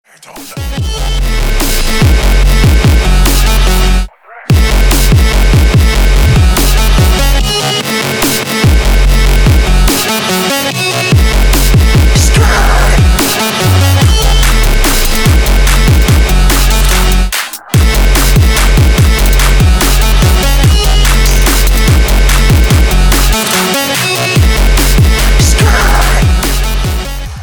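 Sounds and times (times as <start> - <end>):
trap beat: 0.1 - 27.4.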